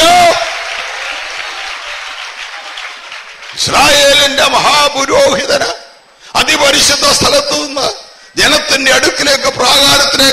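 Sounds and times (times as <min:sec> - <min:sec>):
congregation clapping hands in praise of God: 0:00.0 - 0:04.8
speech: 0:03.7 - 0:05.8, 0:06.4 - 0:10.3.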